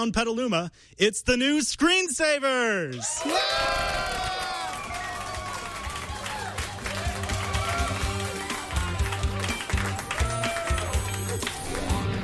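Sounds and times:
speech: 0.0s - 4.2s
studio audience clapping: 2.9s - 12.1s.

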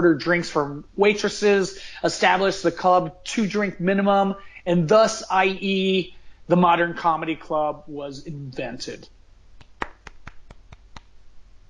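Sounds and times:
speech: 0.0s - 9.2s
hand claps: 9.6s - 11.1s.

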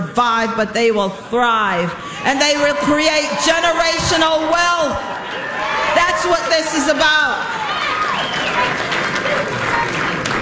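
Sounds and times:
speech: 0.2s - 5.4s, 6.2s - 7.8s
scattered cheers: 2.1s - 10.4s
crowd clapping at the swearing-in of Virginia's Lieutenant Governor: 2.4s - 10.4s.

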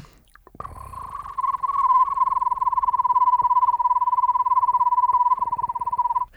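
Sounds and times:
person whistling a trill imitating an owl's call: 1.4s - 6.3s.

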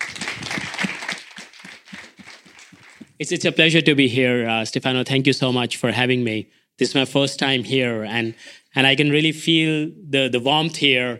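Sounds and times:
audience applause welcoming a speaker: 0.0s - 3.2s
speech: 3.2s - 11.1s.

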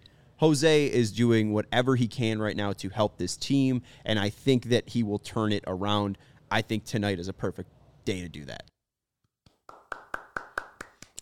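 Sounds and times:
speech: 0.4s - 8.7s
hands clapping: 9.5s - 11.2s.

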